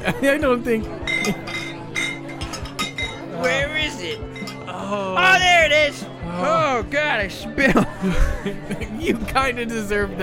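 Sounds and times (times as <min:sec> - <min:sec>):
speech: 0:00.0 - 0:01.6, 0:04.9 - 0:10.2
glass pieces clinking together: 0:01.0 - 0:04.7
laughter: 0:06.4 - 0:09.6.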